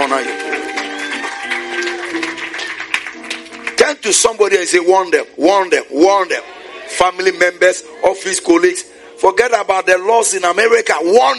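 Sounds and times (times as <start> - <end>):
audience clapping: 0.0 - 4.5
speech: 4.1 - 11.3.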